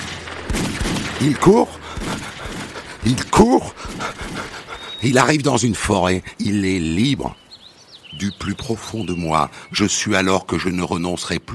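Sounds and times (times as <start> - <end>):
gunfire: 0.0 - 5.0
speech: 1.2 - 2.3, 3.0 - 7.4, 8.1 - 11.5.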